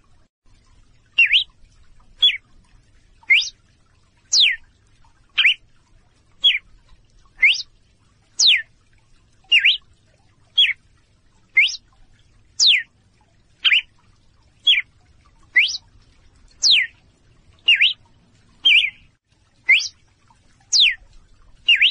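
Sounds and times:
female red-cowled cardinal calling in clear short whistles: 1.2 - 1.5, 3.3 - 3.5, 4.3 - 4.6, 5.4 - 5.6, 7.4 - 7.6, 8.4 - 8.6, 9.5 - 9.8, 11.6 - 11.8, 12.6 - 12.8, 13.6 - 13.9, 15.6 - 15.8, 16.6 - 16.9, 17.7 - 18.0, 18.7 - 19.0, 19.7 - 20.0, 20.8 - 21.0, 21.7 - 21.8.

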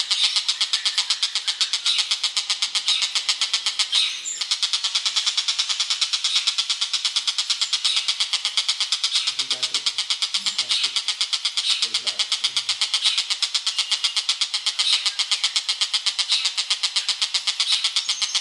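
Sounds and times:
oriental magpie-robin song: 0.0 - 18.3.

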